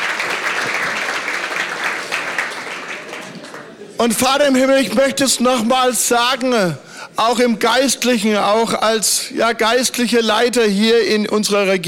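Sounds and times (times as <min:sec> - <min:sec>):
audience clapping: 0:00.0 - 0:04.0
speech: 0:04.0 - 0:11.8.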